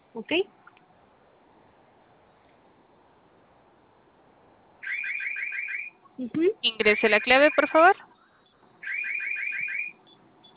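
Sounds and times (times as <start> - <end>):
speech: 0.2 - 0.6, 6.2 - 8.1
home security alarm siren: 4.8 - 6.0, 6.9 - 10.5.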